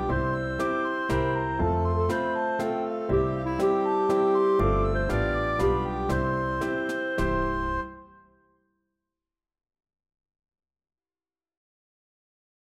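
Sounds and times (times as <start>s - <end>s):
instrumental song: 0.0s - 8.5s.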